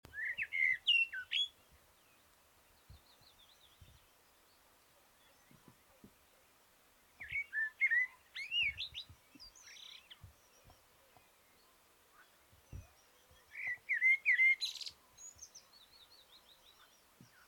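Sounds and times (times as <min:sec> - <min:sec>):
Common blackbird Turdus merula singing: 0:00.1 - 0:06.5, 0:07.1 - 0:17.4.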